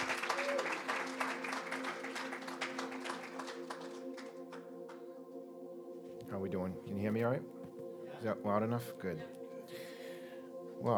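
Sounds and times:
audience clapping in welcome: 0:00.0 - 0:05.0
speech: 0:06.3 - 0:07.6, 0:08.2 - 0:09.4, 0:10.8 - 0:10.9.

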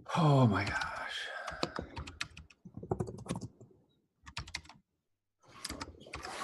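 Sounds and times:
speech: 0:00.2 - 0:00.9
typing on a computer keyboard: 0:00.6 - 0:03.6, 0:04.3 - 0:04.8, 0:05.5 - 0:06.3.

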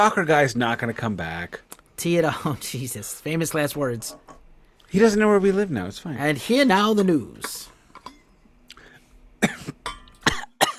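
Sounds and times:
speech: 0:00.0 - 0:07.7
harsh breathy coughs: 0:09.4 - 0:10.7.

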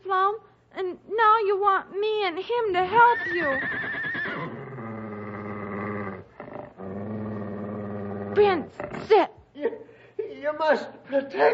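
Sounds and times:
speech: 0:01.6 - 0:04.6, 0:08.4 - 0:09.8, 0:10.4 - 0:11.5
horse neighing: 0:02.9 - 0:09.1.

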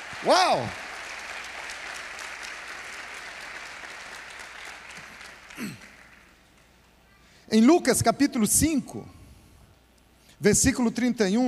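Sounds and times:
audience applause: 0:00.0 - 0:06.6
speech: 0:00.2 - 0:00.8, 0:07.5 - 0:09.2, 0:10.4 - 0:11.4.

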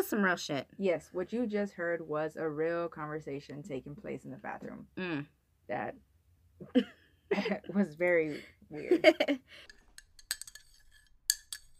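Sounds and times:
speech: 0:00.1 - 0:09.8
cups clinking while someone drinks tea: 0:09.6 - 0:11.7.

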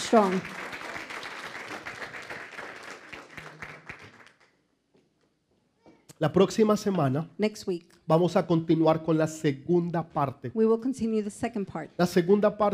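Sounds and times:
audience applause: 0:00.0 - 0:04.6
speech: 0:00.1 - 0:00.6, 0:06.2 - 0:12.7.

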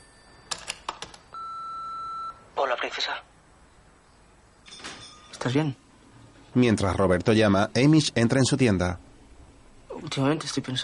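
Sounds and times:
answering machine picking up with beep: 0:01.3 - 0:02.4
speech: 0:02.8 - 0:03.4, 0:05.4 - 0:05.8, 0:06.6 - 0:09.0, 0:10.0 - 0:10.8.

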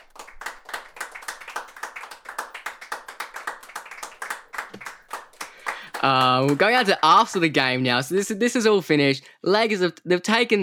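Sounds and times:
hand clapping: 0:00.0 - 0:07.7
speech: 0:06.0 - 0:10.6.

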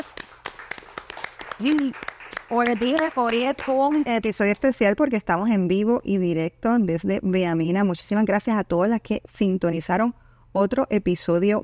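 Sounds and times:
small crowd clapping: 0:00.0 - 0:04.5
speech: 0:01.6 - 0:11.6.

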